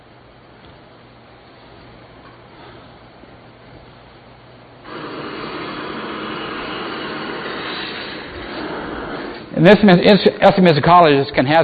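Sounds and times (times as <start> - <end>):
single-engine canvas-covered Piper Cub airplane engine drone while landing: 4.8 - 10.5
speech: 9.6 - 11.6.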